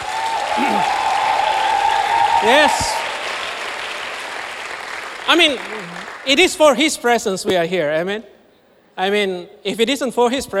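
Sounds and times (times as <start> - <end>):
audience applause: 0.0 - 6.6
speech: 0.6 - 1.1, 2.4 - 3.0, 5.3 - 8.3, 9.0 - 10.5.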